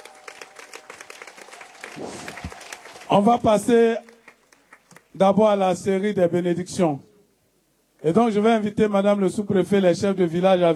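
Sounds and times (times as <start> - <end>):
congregation clapping at a church service: 0.0 - 5.4
speech: 2.0 - 2.5, 3.1 - 4.1, 5.2 - 7.1, 8.0 - 10.7.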